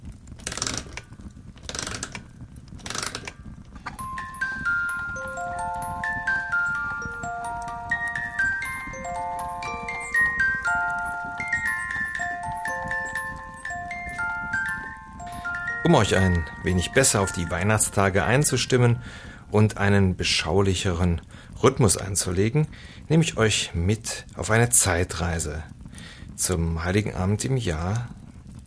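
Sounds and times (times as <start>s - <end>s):
music box playing: 2.8s - 20.0s
speech: 15.8s - 25.7s, 26.4s - 28.2s.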